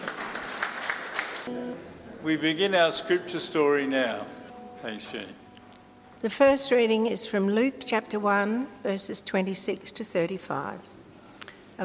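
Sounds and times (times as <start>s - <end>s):
audience applause: 0.0s - 1.5s
speech: 1.5s - 5.4s, 6.2s - 10.9s.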